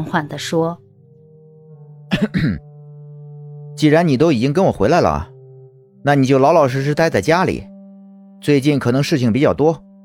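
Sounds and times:
speech: 0.0s - 0.8s, 2.1s - 2.7s, 3.8s - 5.3s, 6.0s - 7.7s, 8.4s - 9.9s
coughs: 2.1s - 2.7s.

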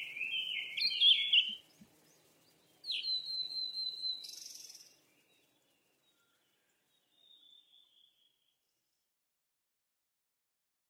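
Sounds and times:
bird whistling calls: 0.0s - 1.6s, 2.8s - 4.9s.

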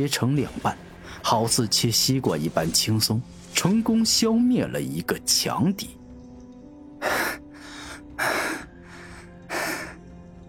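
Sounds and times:
speech: 0.0s - 6.0s
heavy panting gasps: 7.0s - 10.0s.

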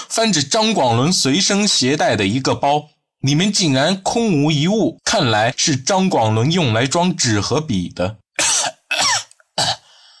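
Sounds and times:
speech: 0.1s - 8.8s
coughing: 8.4s - 10.0s.

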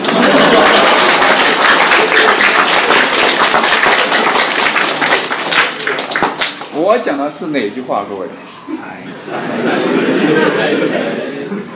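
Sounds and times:
laughter: 0.0s - 1.4s, 8.7s - 11.7s
crowd applauding: 0.0s - 6.8s
speech: 6.9s - 8.5s, 9.3s - 11.6s.

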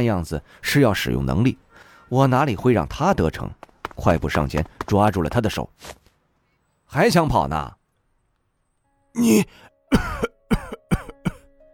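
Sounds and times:
speech: 0.0s - 6.0s, 6.9s - 7.8s, 9.2s - 10.3s
violent coughing: 9.2s - 11.5s.

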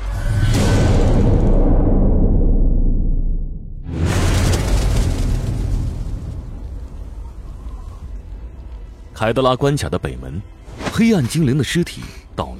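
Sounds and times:
huge explosion: 0.5s - 7.5s
speech: 9.2s - 12.5s.

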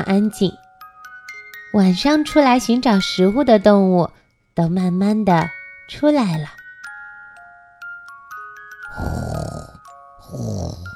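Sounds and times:
speech: 0.0s - 0.6s, 1.7s - 6.6s, 9.0s - 9.4s
snoring: 8.9s - 10.9s.

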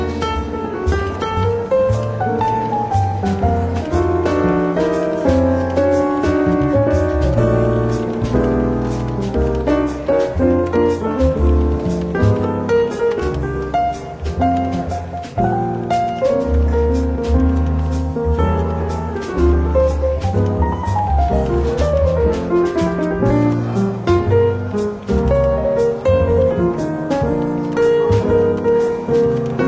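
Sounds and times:
soft relaxed jazz with walking bass in a London bookshop café: 0.0s - 29.6s.

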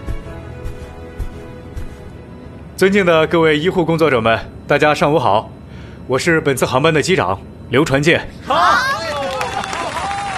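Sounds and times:
speech: 2.8s - 8.9s
cheering inside an aircraft cabin: 8.5s - 10.3s
applause inside an aircraft cabin: 9.1s - 10.3s.

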